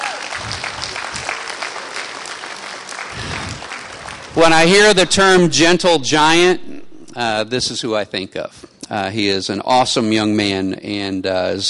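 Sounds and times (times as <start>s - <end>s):
audience applause: 0.0s - 4.7s
speech: 4.4s - 11.6s.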